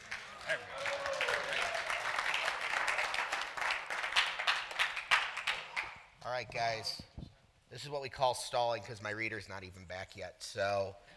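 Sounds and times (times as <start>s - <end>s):
audience applause: 0.0s - 5.8s
speech: 6.4s - 11.1s.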